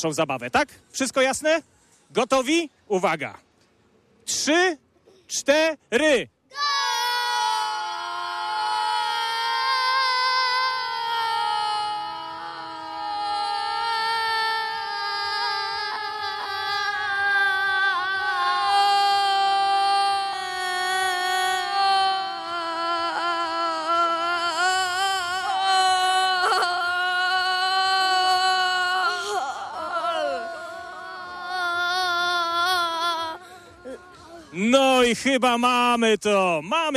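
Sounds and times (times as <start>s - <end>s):
speech: 0.0s - 3.5s, 4.3s - 6.7s, 35.2s - 36.9s
children shouting goal in one breath: 6.5s - 34.6s.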